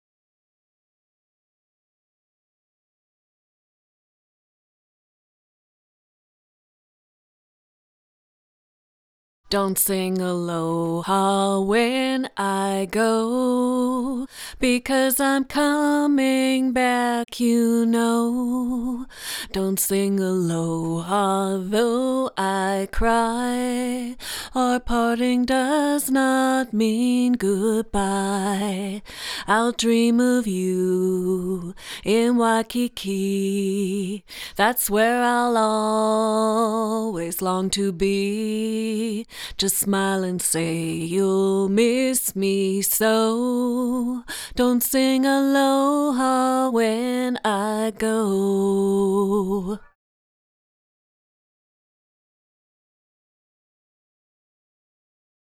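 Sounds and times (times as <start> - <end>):
person singing: 9.5 - 49.9.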